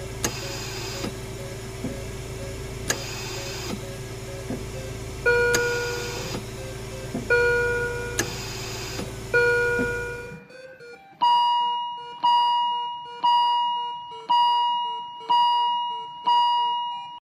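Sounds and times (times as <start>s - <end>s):
steady hum: 0.0s - 10.5s
intensive care monitor beeps and alarm tones: 0.0s - 17.2s.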